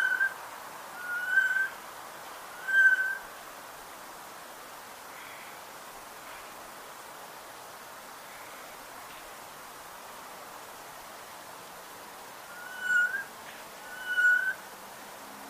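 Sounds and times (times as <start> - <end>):
Garrulus glandarius: 1.0 - 1.8, 2.5 - 3.3, 12.5 - 14.6.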